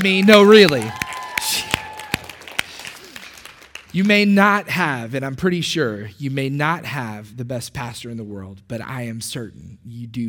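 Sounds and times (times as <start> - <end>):
speech: 0.0 - 1.6, 3.9 - 10.2
audience applause: 0.0 - 4.3.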